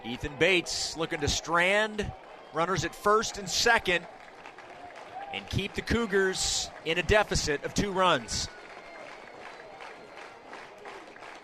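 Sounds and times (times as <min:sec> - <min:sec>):
baseball crowd cheering and clapping: 0:00.0 - 0:11.4
speech: 0:00.1 - 0:04.2, 0:05.3 - 0:08.6.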